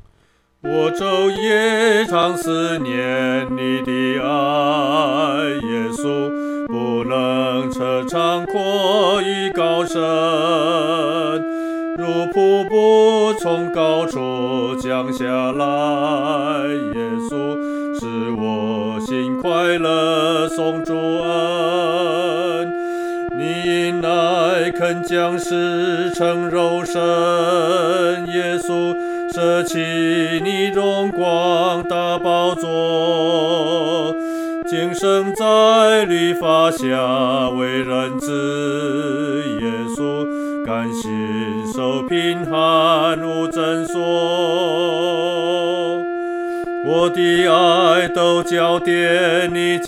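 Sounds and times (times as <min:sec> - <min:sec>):
solo singing, second voice: 0:00.6 - 0:49.8.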